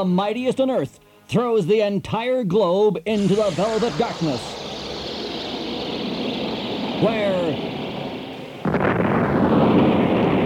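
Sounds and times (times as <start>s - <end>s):
speech: 0.0s - 4.6s, 7.0s - 7.7s
low hiss: 0.0s - 9.8s
explosion blast: 3.2s - 10.4s.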